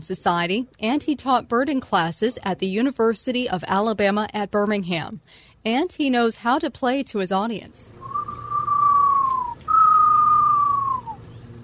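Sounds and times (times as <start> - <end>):
speech: 0.0 - 7.9
person whistling imitation of eastern screech owl: 8.0 - 11.2.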